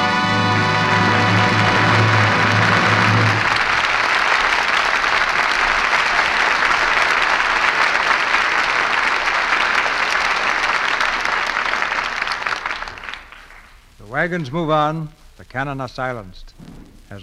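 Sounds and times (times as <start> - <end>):
audience applause: 0.2 - 13.8
speech: 14.3 - 17.2.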